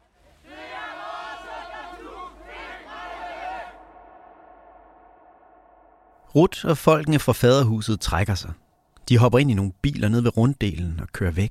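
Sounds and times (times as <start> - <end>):
protest crowd chanting a slogan in unison: 0.0 - 6.1
speech: 6.3 - 11.4.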